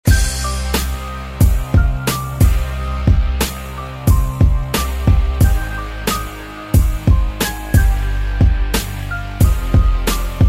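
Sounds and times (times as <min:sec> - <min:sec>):
music beat: 0:00.0 - 0:10.4.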